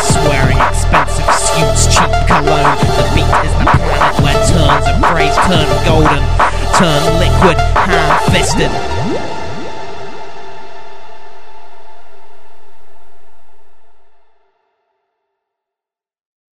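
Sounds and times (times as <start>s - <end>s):
rapping over ambient music: 0.0s - 9.4s.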